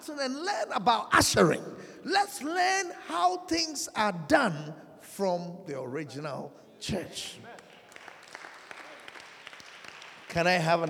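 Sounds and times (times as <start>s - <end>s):
speech: 0.0s - 7.5s, 10.3s - 10.8s
audience clapping: 7.4s - 10.8s.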